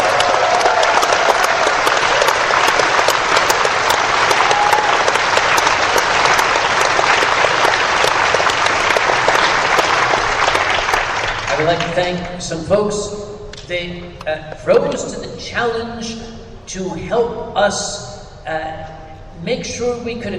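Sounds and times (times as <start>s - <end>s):
audience applause: 0.0s - 12.0s
speech: 12.0s - 20.3s.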